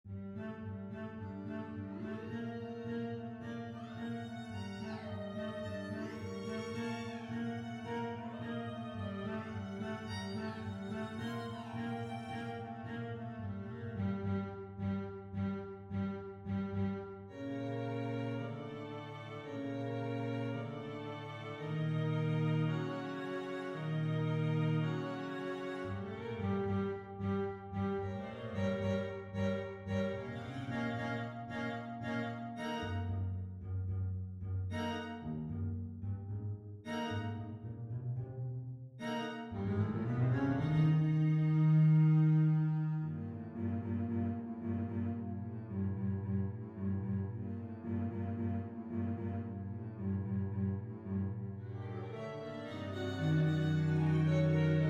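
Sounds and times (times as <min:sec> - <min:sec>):
MIDI string quintet: 0:00.0 - 0:54.8.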